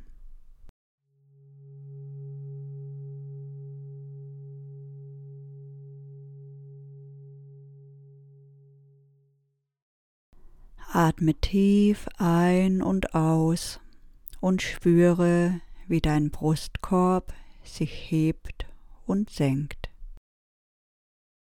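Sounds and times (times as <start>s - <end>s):
low gong tone marking start of meditation: 1.1s - 9.5s
speech: 11.0s - 13.8s, 14.4s - 19.8s.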